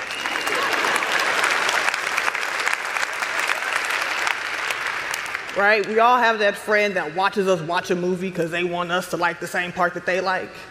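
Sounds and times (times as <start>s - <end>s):
audience applause: 0.0s - 6.0s
speech: 5.6s - 10.6s.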